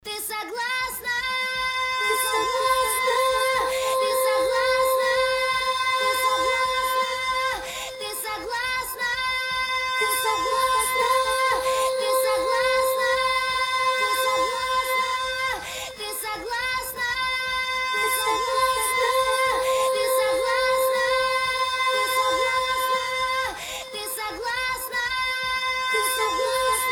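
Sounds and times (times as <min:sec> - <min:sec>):
chorus singing: 0:00.5 - 0:26.9.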